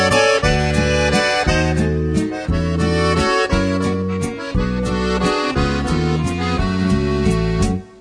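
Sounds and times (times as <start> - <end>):
professional musette accordion: 0.0 - 7.9.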